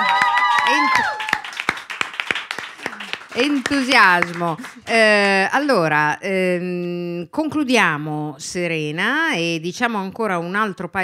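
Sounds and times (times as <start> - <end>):
sparse applause after a theatre excerpt: 0.0 - 4.8
speech: 3.4 - 11.0.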